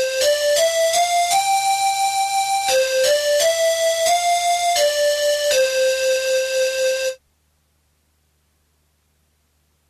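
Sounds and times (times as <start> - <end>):
national anthem melody: 0.0 - 7.2.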